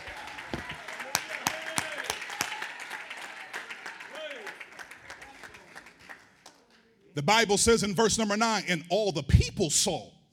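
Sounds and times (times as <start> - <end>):
audience clapping hands: 0.0 - 7.0
speech: 7.2 - 10.2.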